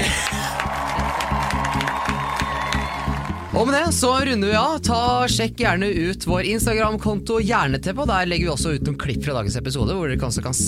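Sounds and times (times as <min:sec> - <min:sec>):
studio audience applause: 0:00.0 - 0:03.6
speech: 0:03.6 - 0:10.6.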